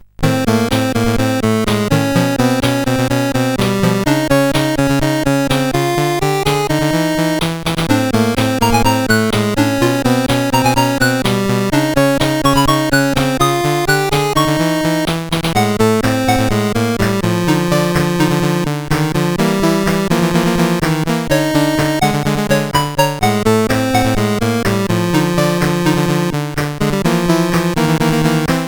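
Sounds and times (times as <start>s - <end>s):
chiptune music on a SID CSG 8580R5 chip: 0.2s - 28.6s.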